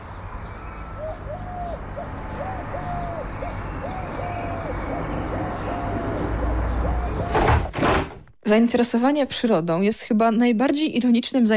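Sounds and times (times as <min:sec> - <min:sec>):
sparrows chirping: 0:00.0 - 0:07.4
constant low rumble of traffic: 0:00.0 - 0:08.4
speech: 0:08.5 - 0:11.5.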